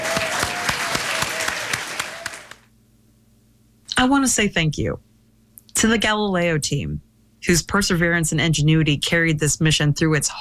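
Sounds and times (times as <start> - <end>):
audience applause: 0.0 - 2.7
speech: 4.0 - 5.1, 5.8 - 10.3.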